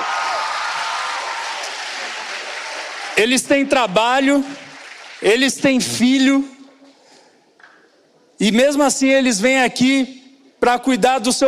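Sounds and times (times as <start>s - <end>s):
audience applause: 0.0s - 5.2s
speech: 3.2s - 4.6s, 5.2s - 6.5s, 8.4s - 11.4s.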